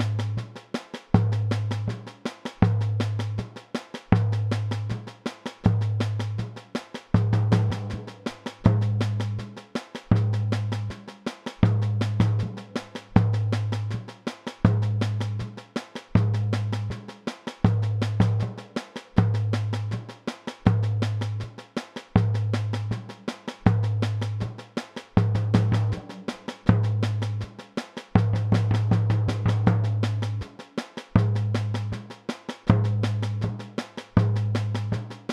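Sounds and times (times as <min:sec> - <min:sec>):
samba music variations: 0:00.0 - 0:35.3.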